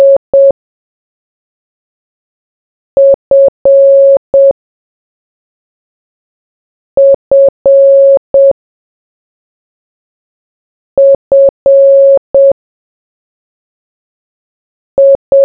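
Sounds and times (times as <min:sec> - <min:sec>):
morse code beeps: 0:00.0 - 0:00.5, 0:03.0 - 0:04.6, 0:07.0 - 0:08.6, 0:11.0 - 0:12.6, 0:15.0 - 0:15.4.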